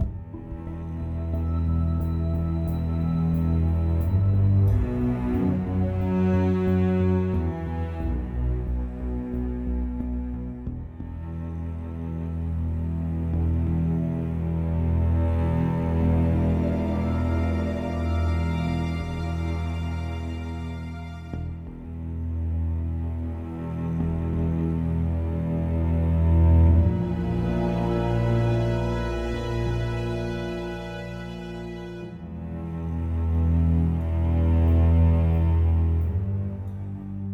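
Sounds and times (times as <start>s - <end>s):
sneaky story music: 0.0s - 37.3s.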